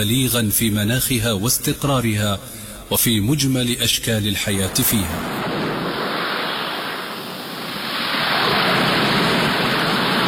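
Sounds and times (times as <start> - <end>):
speech: 0.0 - 5.6
ocean surf breaking on the shore: 4.6 - 10.2.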